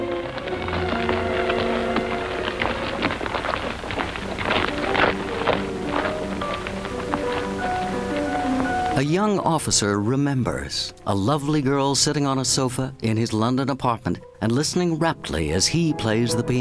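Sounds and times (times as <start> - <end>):
marching footsteps: 0.0 - 9.0
speech: 9.0 - 16.5.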